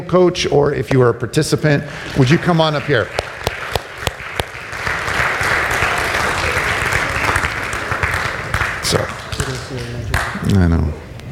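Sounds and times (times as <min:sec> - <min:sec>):
speech: 0:00.0 - 0:03.3, 0:08.9 - 0:09.2, 0:10.5 - 0:11.0
audience applause: 0:01.8 - 0:10.4.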